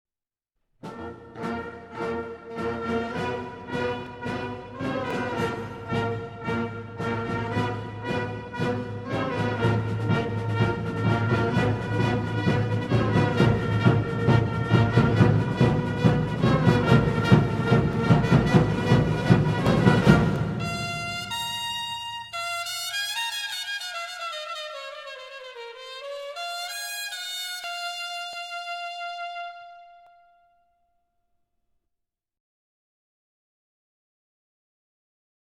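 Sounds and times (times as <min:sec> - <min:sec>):
pep band playing: 0:00.9 - 0:22.7.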